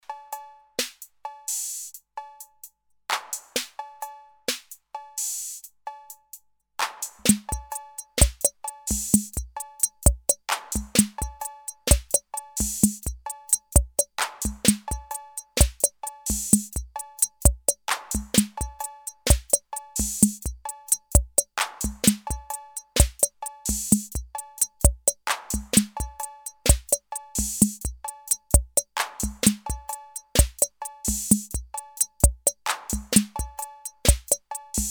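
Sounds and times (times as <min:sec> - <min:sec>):
Roland CR-78 and TR-808 drum machine groove: 0:07.0 - 0:34.8.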